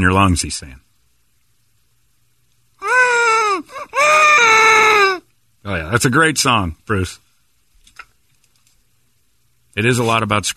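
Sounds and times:
speech: 0.0s - 0.9s, 5.6s - 7.2s, 9.8s - 10.5s
baby crying: 2.8s - 5.2s.

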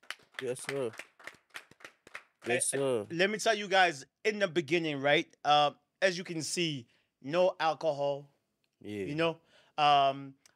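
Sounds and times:
audience clapping: 0.0s - 3.1s
speech: 0.4s - 1.1s, 2.4s - 10.4s.

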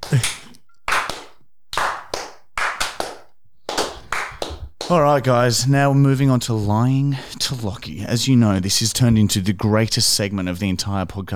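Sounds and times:
hand clapping: 0.0s - 5.2s
speech: 0.1s - 0.4s, 4.9s - 11.3s.

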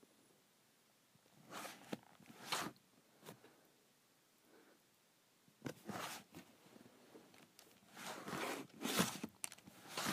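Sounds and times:
calculator cover sliding on and off: 1.5s - 2.8s, 5.6s - 6.5s, 7.9s - 10.1s.

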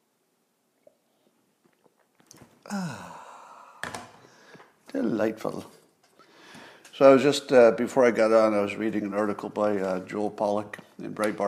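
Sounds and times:
people sipping coffee: 0.8s - 4.7s
speech: 2.7s - 3.2s, 4.9s - 5.8s, 7.0s - 11.4s.

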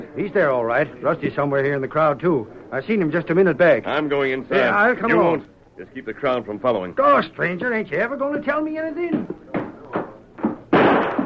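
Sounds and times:
speech: 0.2s - 9.4s
thumps: 8.3s - 11.2s
loud sharp gunshot fired through a window: 10.7s - 11.2s.

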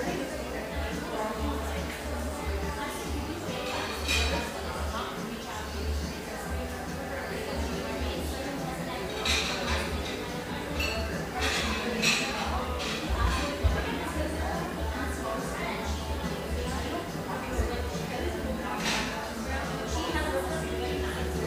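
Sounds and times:
murmur of voices in an espresso shop: 0.0s - 21.4s
cups and dishes clinking: 3.5s - 4.8s, 8.4s - 14.6s, 17.6s - 19.8s.

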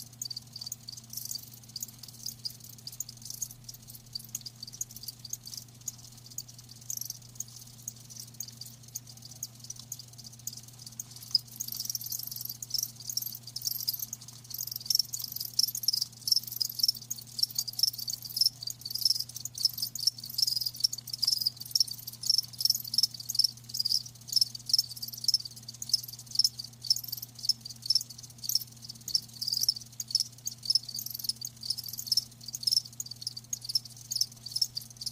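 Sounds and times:
crickets chirping: 0.0s - 35.1s
low electrical hum: 0.0s - 35.1s.

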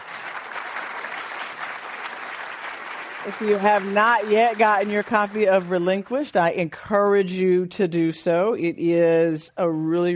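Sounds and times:
audience applause: 0.0s - 6.0s
speech: 3.2s - 10.1s.

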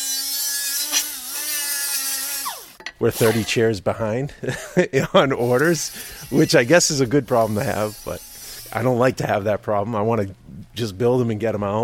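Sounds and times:
welding on an aluminum wheelchair frame in a machine shop: 0.0s - 3.6s, 5.4s - 9.2s
speech: 3.0s - 11.8s.

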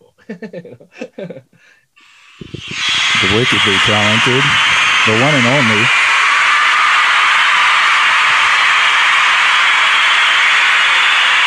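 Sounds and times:
speech: 0.3s - 6.0s
crowd cheering sound effect: 2.4s - 11.4s.

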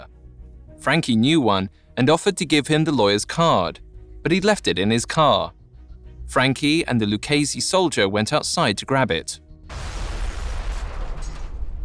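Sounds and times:
speech: 0.8s - 5.6s, 6.3s - 9.9s
car bomb explosion: 9.7s - 11.8s.

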